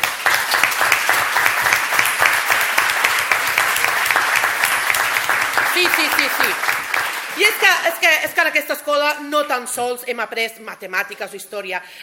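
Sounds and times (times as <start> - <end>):
audience applause at a school ceremony: 0.0 - 8.0
speech: 5.9 - 6.7, 7.4 - 12.0.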